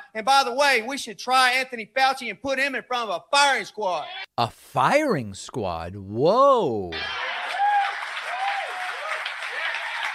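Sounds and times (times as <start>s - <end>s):
speech: 0.2s - 7.2s
crowd applauding and cheering: 7.0s - 10.1s.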